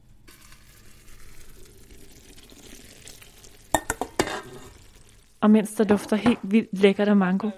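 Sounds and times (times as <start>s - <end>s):
hot sugar syrup pouring into a bowl of gelatin: 0.3s - 5.5s
speech: 5.4s - 7.5s.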